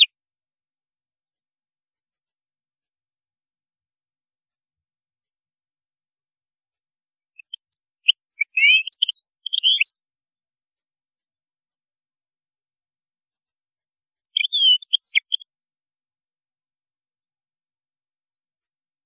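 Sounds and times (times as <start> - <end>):
European goldfinch twittering song: 7.4 - 10.0, 14.3 - 15.4.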